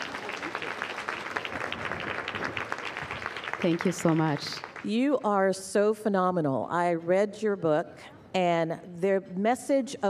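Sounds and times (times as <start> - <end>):
audience applause: 0.0 - 4.9
speech: 3.6 - 10.0.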